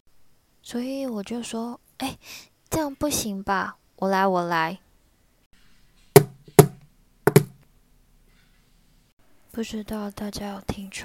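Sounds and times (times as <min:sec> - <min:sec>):
speech: 0:00.7 - 0:04.8, 0:09.6 - 0:11.0
knocking on a door: 0:06.2 - 0:07.6.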